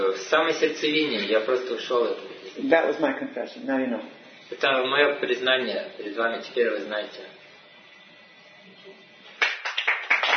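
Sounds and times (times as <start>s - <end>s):
speech: 0.0s - 7.4s
audience applause: 9.4s - 10.3s.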